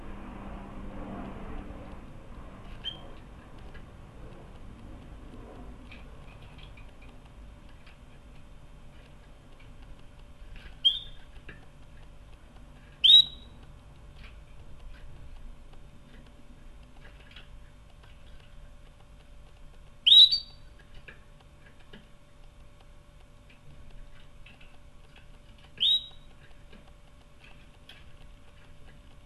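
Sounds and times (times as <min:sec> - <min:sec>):
low hum: 0:00.0 - 0:29.2
canary rising whistle calls: 0:10.8 - 0:11.2, 0:13.0 - 0:13.5, 0:20.0 - 0:20.6, 0:25.8 - 0:26.3.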